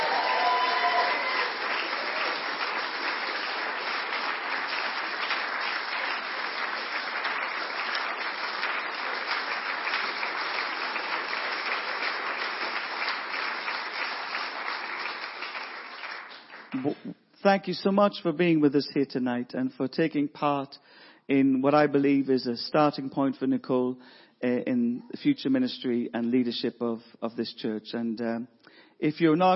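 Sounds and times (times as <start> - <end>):
audience applauding and cheering: 0.0 - 17.0
speech: 16.8 - 29.5.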